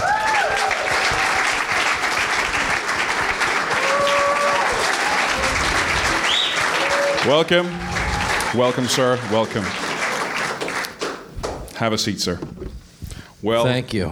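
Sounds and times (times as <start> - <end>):
studio audience cheers: 0.0 - 2.7, 3.3 - 10.4
studio audience applause welcoming a bodybuilder guest: 0.0 - 11.8
speech: 7.2 - 9.8, 11.8 - 12.7, 13.4 - 14.1.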